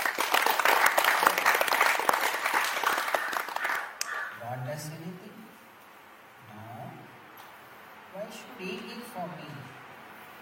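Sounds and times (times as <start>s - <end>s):
audience clapping: 0.0s - 4.3s.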